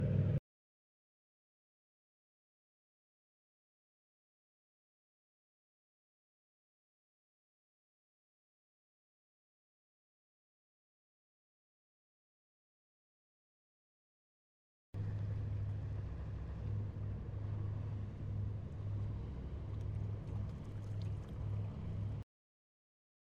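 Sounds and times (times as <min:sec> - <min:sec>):
Wellcraft Scarab 34 boat approaching and moving away: 0:00.0 - 0:00.4, 0:15.0 - 0:22.2.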